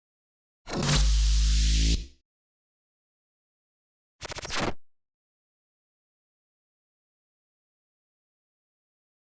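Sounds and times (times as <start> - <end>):
glitch sound effects ambience: 0.7 - 2.1.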